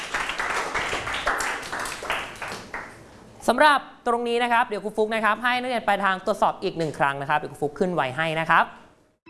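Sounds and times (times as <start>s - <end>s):
class of students applauding a student group: 0.0s - 3.0s
speech: 3.5s - 8.8s.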